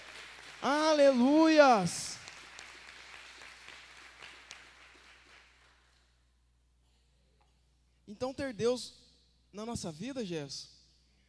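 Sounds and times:
applause: 0:00.0 - 0:06.0
speech: 0:00.6 - 0:02.1, 0:08.2 - 0:10.8.

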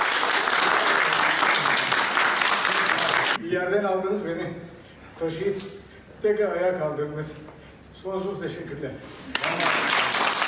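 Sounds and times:
colleagues applauding: 0:00.0 - 0:03.4, 0:09.3 - 0:10.4
speech: 0:03.5 - 0:09.7.

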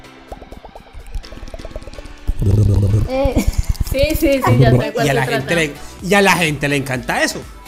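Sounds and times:
voice imitating ASMR microphone sounds with wet mouth clicks and pops: 0:00.0 - 0:04.8
speech: 0:02.4 - 0:07.6.

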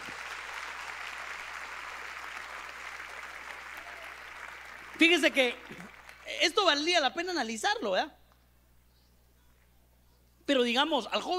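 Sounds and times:
audience applauding: 0:00.0 - 0:06.4
speech: 0:05.0 - 0:08.2, 0:10.5 - 0:11.3.

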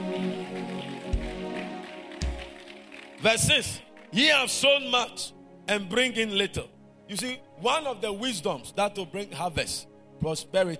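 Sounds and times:
audience clapping hands: 0:00.0 - 0:04.2
speech: 0:03.2 - 0:10.7.

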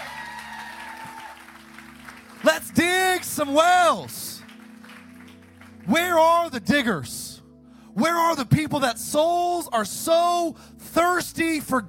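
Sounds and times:
audience hand clapping: 0:00.0 - 0:06.2
speech: 0:03.4 - 0:04.2, 0:05.9 - 0:07.2, 0:08.0 - 0:11.8.

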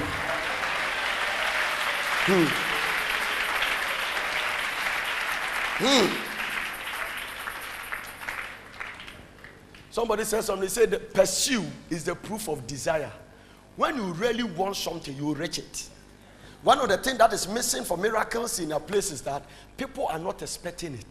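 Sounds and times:
audience clapping: 0:00.0 - 0:09.9
speech: 0:02.3 - 0:02.7, 0:05.8 - 0:06.2, 0:10.0 - 0:13.2, 0:13.8 - 0:16.0, 0:16.6 - 0:21.0.

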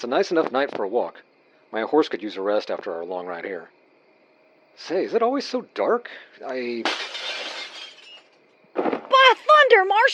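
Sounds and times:
speech: 0:00.0 - 0:03.8, 0:04.8 - 0:07.1, 0:09.4 - 0:10.1
window glass shattering: 0:06.8 - 0:08.4.

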